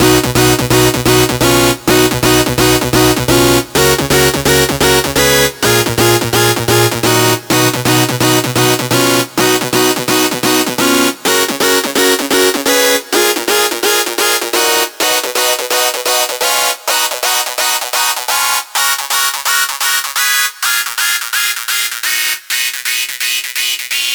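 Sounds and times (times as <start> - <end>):
analog synth bass lead: 0.0 - 24.0.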